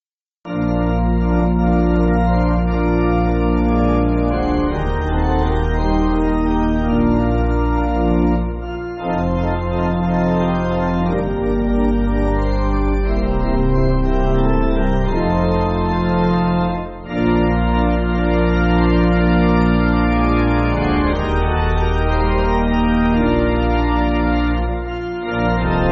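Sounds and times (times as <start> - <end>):
pipe organ backing for churches: 0.5 - 25.9.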